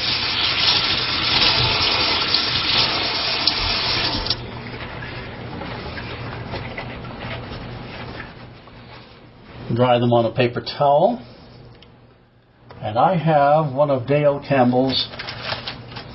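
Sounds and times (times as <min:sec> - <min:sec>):
tap water running: 0:00.0 - 0:06.5
speech: 0:09.8 - 0:11.3, 0:12.8 - 0:15.2.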